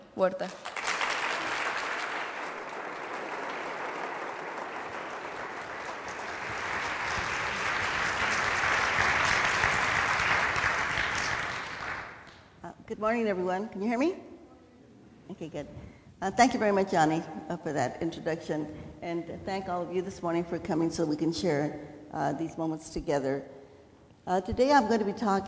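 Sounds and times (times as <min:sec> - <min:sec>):
speech: 0:00.2 - 0:00.8, 0:13.0 - 0:14.3, 0:15.4 - 0:23.6, 0:24.2 - 0:25.4
large audience applause welcoming a speaker: 0:00.6 - 0:12.3.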